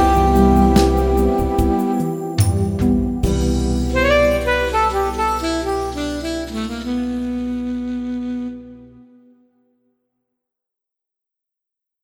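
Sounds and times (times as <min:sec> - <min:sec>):
alto saxophone over a sweet beat: 0:00.0 - 0:09.3.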